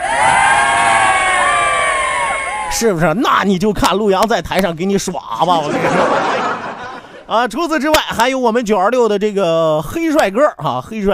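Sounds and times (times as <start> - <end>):
crowd audience applause and cheering: 0.0 - 2.8
speech: 2.8 - 6.4, 7.3 - 11.1
laughter: 5.5 - 7.5.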